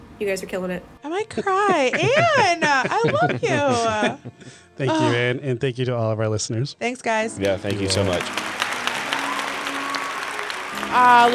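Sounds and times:
speech: 0.2s - 8.6s, 10.9s - 11.3s
laughter: 1.2s - 5.6s
crowd applauding: 1.9s - 4.0s, 7.4s - 11.3s.

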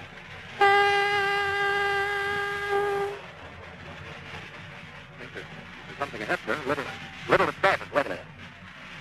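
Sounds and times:
ship's horn sounding in fog: 0.6s - 3.2s
speech: 6.0s - 8.2s.

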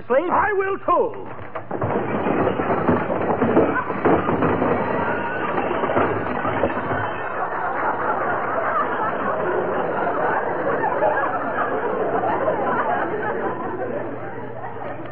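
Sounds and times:
speech: 0.1s - 2.3s
junk crashing out of an opened closet: 1.3s - 9.5s
laughter: 2.6s - 15.1s.

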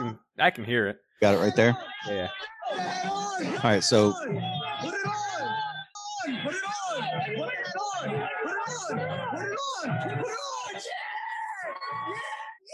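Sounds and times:
speech: 0.4s - 12.7s
crowd cheering at Yankees baseball stadium: 1.2s - 10.9s.

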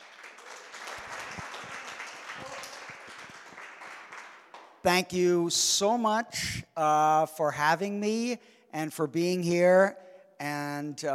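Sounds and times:
audience applause: 0.0s - 4.8s
speech: 4.8s - 11.1s.

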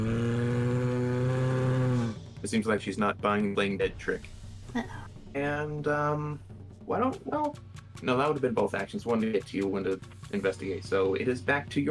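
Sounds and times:
voice imitating a bear roaring loudly: 0.0s - 2.2s
speech: 2.4s - 11.9s.

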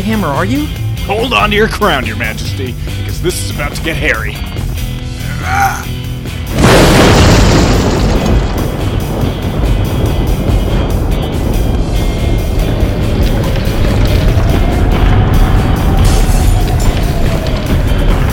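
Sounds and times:
speech: 0.0s - 4.6s, 5.4s - 6.0s
crumbling walls: 6.2s - 18.3s
falling rubble: 6.4s - 18.3s.

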